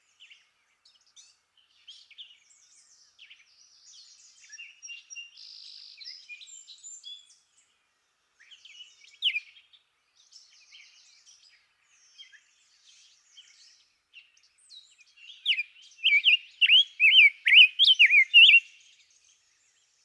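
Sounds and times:
Rose-breasted Grosbeak: 16.0s - 18.6s.

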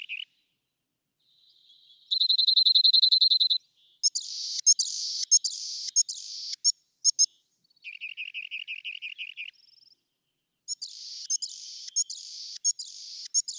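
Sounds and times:
Rock wren song: 1.2s - 13.5s.

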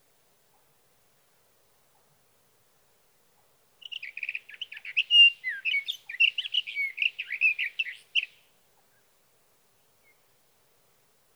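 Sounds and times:
sage thrasher singing: 3.8s - 8.4s.

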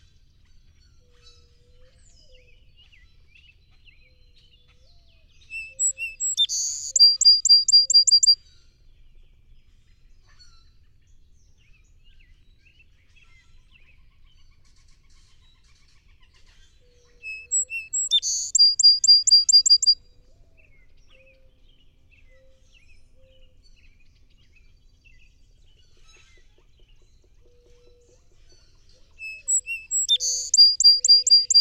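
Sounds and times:
song sparrow singing: 5.6s - 8.4s, 17.3s - 20.0s, 29.2s - 31.5s.

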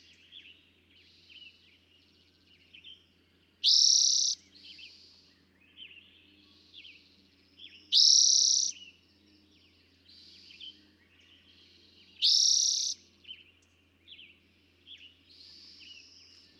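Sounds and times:
small birds chirping and twittering: 0.0s - 16.5s.

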